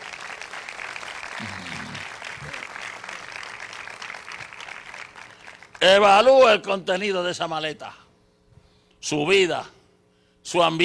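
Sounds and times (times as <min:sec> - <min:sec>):
audience applause: 0:00.0 - 0:05.8
speech: 0:01.4 - 0:01.7, 0:05.8 - 0:08.0, 0:09.0 - 0:09.8, 0:10.4 - 0:10.8.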